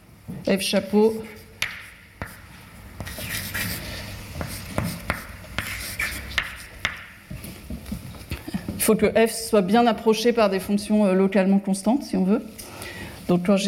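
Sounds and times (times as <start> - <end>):
speech: 0.4 - 1.4, 8.9 - 12.6, 13.3 - 13.6
handwriting scratching: 1.0 - 2.4, 3.0 - 7.1.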